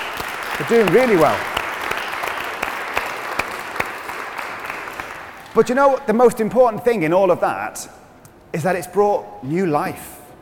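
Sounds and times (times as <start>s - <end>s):
audience applause: 0.0s - 5.4s
speech: 0.6s - 1.5s, 5.6s - 10.2s.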